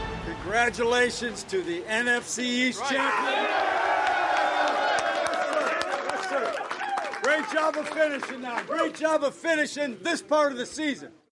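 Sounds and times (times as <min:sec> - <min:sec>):
speech: 0:00.4 - 0:03.8, 0:07.3 - 0:11.2
crowd cheering at MetLife Stadium after the Giants clinch the NFC East: 0:02.1 - 0:09.4
scattered claps: 0:04.0 - 0:09.1.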